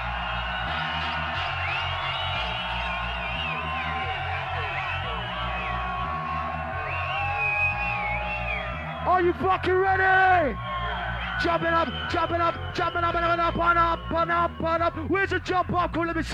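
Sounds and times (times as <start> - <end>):
loud crowd cheering at a rave: 0.0 - 16.3
speech: 9.2 - 10.7, 11.4 - 16.3.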